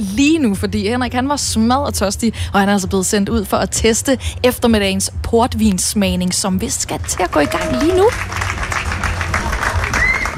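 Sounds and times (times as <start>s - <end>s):
speech: 0.0s - 8.6s
low rumble: 0.0s - 10.3s
small round of applause at a port wine tasting event: 7.0s - 10.3s.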